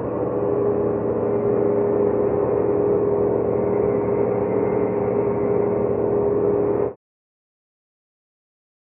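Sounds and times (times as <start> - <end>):
tonal ambient drones and tones: 0.0 - 7.0.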